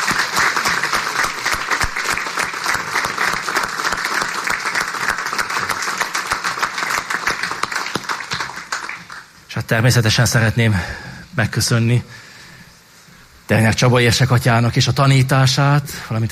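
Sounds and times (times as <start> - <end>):
audience applause: 0.0 - 9.4
speech: 9.7 - 12.2, 13.5 - 16.3.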